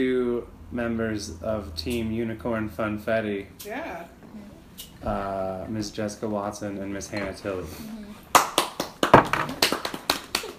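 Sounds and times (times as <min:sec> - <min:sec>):
speech: 0:00.0 - 0:04.2, 0:04.8 - 0:08.1
small group hand claps: 0:08.3 - 0:10.5.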